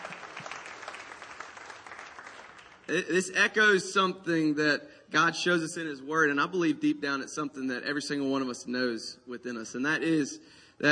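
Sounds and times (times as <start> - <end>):
audience clapping and cheering: 0.0 - 3.0
speech: 2.9 - 10.9.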